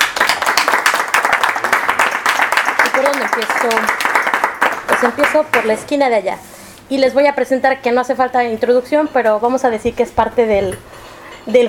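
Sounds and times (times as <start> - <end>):
audience applause for poets at a book presentation: 0.0 - 5.7
speech: 3.2 - 4.1, 5.0 - 11.6.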